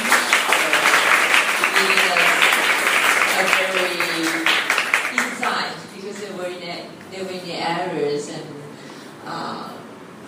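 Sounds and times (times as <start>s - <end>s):
applause for a board: 0.0s - 6.3s
speech: 6.2s - 8.6s, 9.2s - 9.8s.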